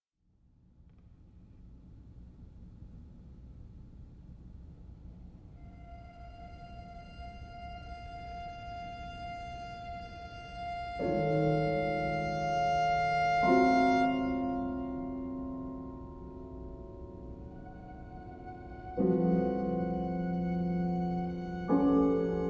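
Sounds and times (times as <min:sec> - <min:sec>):
violin and piano piece: 0:05.5 - 0:22.4.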